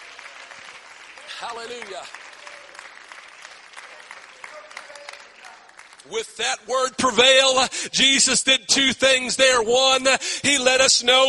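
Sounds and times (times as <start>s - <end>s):
audience clapping hands: 0.0s - 6.7s
speech: 1.4s - 2.3s, 6.0s - 11.2s.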